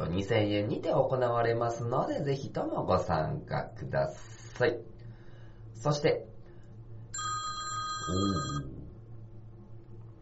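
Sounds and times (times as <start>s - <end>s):
speech: 0.2s - 5.0s, 5.8s - 6.3s, 8.0s - 8.8s
alarm ringing: 7.2s - 8.7s.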